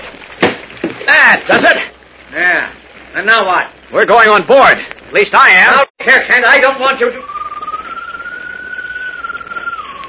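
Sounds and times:
faint hiss: 0.0 - 10.0
speech: 1.3 - 7.3
bird-like whistled call: 6.9 - 10.0.

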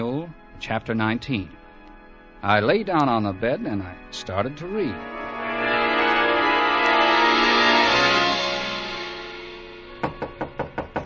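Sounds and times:
speech: 0.0 - 1.6, 2.4 - 5.2
sustained droning musical tone: 0.0 - 10.6
knocking on hotel room door: 10.0 - 11.0.

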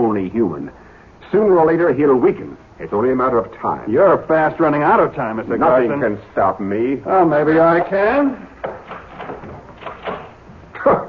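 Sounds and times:
speech: 0.2 - 8.5
door being locked: 8.6 - 10.4.

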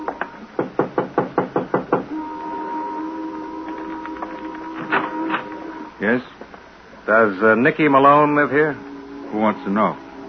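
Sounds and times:
knocking on a house door: 0.6 - 2.1
steady low hum: 2.1 - 10.2
speech: 6.0 - 6.4, 7.1 - 10.0.

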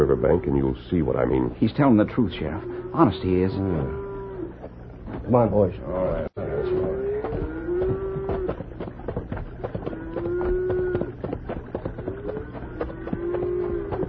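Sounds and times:
hooves and movement: 0.0 - 14.0
speech: 0.1 - 4.0, 5.1 - 6.8
herd of cattle mooing: 2.4 - 4.6, 5.9 - 8.7, 9.6 - 14.0.

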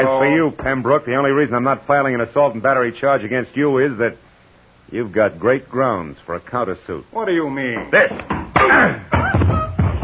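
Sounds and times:
speech: 0.0 - 4.2, 4.9 - 9.6
sneezing: 8.6 - 9.7.

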